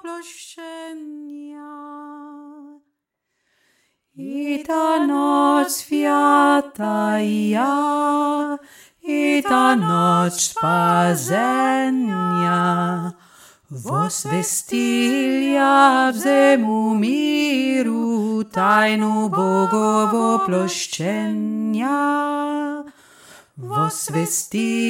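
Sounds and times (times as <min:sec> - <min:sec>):
lower voice singing a Russian Christmas song: 0:04.2 - 0:22.9, 0:23.6 - 0:24.8.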